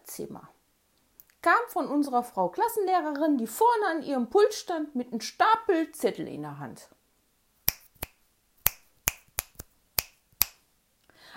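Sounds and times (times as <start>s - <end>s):
speech: 0.2s - 0.6s, 1.4s - 7.0s
finger snapping: 7.7s - 10.6s.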